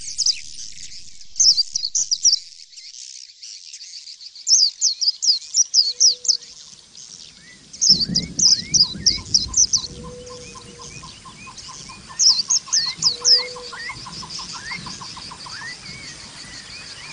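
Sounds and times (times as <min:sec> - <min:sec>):
white-eye calling with very high chirping notes: 0:05.8 - 0:17.1.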